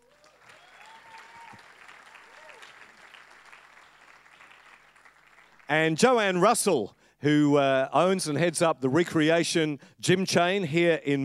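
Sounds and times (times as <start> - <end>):
brief vocal cheers: 0.0 - 4.9
faint audience applause at a church event in Melbourne welcoming a soccer player: 0.0 - 5.9
speech: 5.7 - 11.2.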